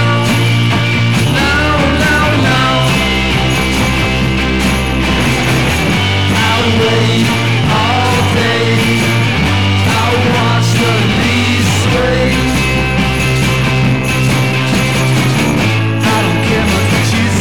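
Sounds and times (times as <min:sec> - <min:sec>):
bells with tremolo and distortion: 0:00.0 - 0:17.3.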